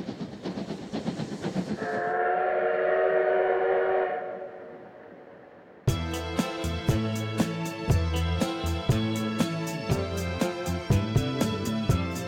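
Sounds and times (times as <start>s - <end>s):
steam locomotive chuffing on the Oigawa Railway main line: 0.0s - 3.3s, 5.9s - 12.2s
steam locomotive whistle on the Oigawa Railway main line: 1.8s - 4.9s.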